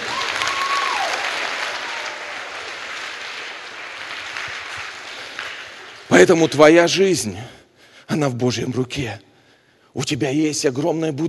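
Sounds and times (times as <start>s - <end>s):
audience applause: 0.0s - 6.6s
speech: 6.2s - 9.3s, 10.0s - 11.2s.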